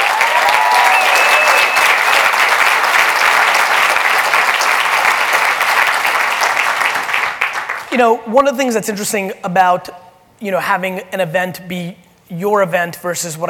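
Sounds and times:
sustained applause from a large audience: 0.0s - 7.9s
whistles: 0.7s - 2.0s
speech: 8.0s - 13.4s.

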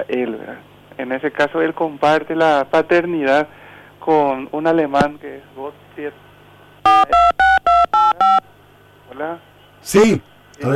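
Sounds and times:
speech: 0.0s - 6.3s, 9.2s - 10.7s
faint steady tone: 1.1s - 10.7s
telephone dialing tones: 6.9s - 8.5s.

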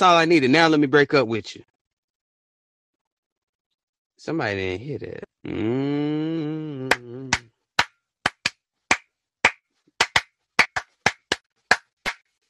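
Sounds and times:
speech: 0.0s - 1.7s, 4.2s - 7.4s
church audience clapping: 8.2s - 12.3s.

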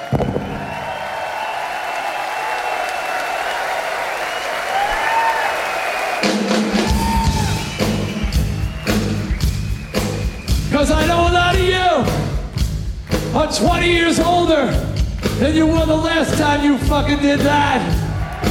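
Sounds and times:
high whoops: 0.0s - 8.9s
crowd applauding and cheering: 0.0s - 18.4s
speech: 13.5s - 18.0s.

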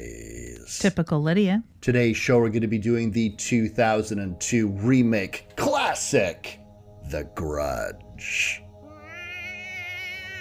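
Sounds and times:
speech: 0.7s - 8.6s
person imitating cat meow: 8.9s - 10.4s.

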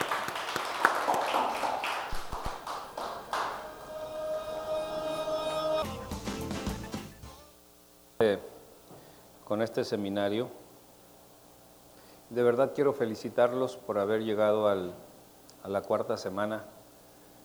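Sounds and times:
audience applause: 0.0s - 6.9s
speech: 8.2s - 8.5s, 9.5s - 10.6s, 12.3s - 16.7s.

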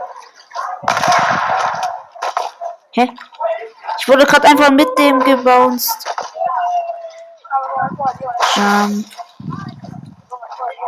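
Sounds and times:
gunfire in a video game: 0.9s - 2.5s
speech: 3.0s - 3.3s, 4.0s - 6.1s, 8.5s - 9.2s.

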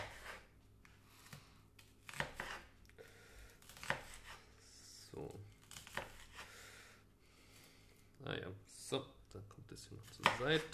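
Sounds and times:
knife chopping broccoli on cutting board: 0.0s - 0.5s, 2.0s - 2.7s, 3.7s - 4.4s, 5.7s - 6.4s, 10.1s - 10.7s
speech: 8.9s - 10.7s.

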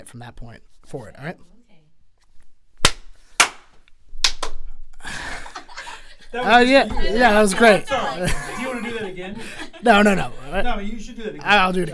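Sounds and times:
speech: 0.0s - 1.6s, 6.3s - 11.9s
single hand clap for syncing: 2.8s - 4.6s
laughter: 5.0s - 11.2s.

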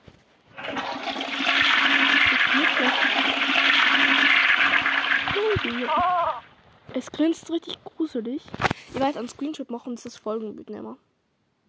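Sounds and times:
toilet flushing: 0.6s - 6.5s
speech: 7.1s - 11.1s.

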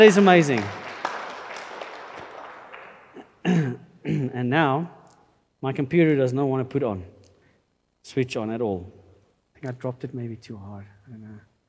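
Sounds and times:
speech: 0.0s - 0.8s, 3.4s - 5.0s, 5.6s - 7.1s, 8.1s - 9.0s, 9.6s - 11.5s
audience applause: 0.0s - 3.3s.

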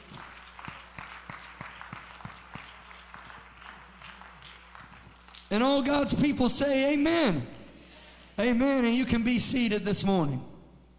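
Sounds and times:
audience clapping: 0.0s - 6.0s
speech: 5.5s - 7.6s, 8.4s - 10.5s.

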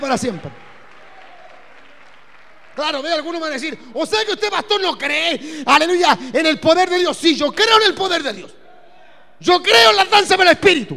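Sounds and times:
speech: 0.0s - 0.7s, 2.8s - 8.6s, 9.4s - 10.9s
audience applauding: 0.0s - 3.7s.

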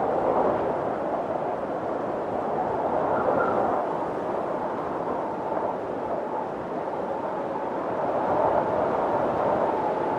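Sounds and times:
soft wind through trees during a snowstorm: 0.0s - 10.1s.

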